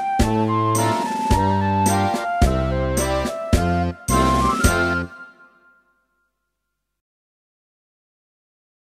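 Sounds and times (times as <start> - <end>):
guitar playing nursery rhyme: 0.0 - 5.8.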